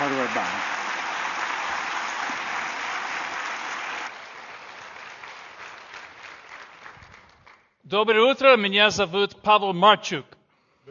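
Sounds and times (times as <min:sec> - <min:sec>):
church congregation applauding to welcome a visiting pastor from Ukraine: 0:00.0 - 0:07.8
speech: 0:07.9 - 0:10.8.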